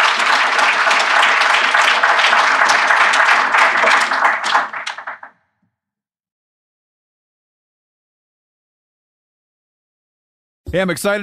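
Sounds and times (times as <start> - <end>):
audience round of applause: 0.0 - 5.3
speech: 10.7 - 11.2.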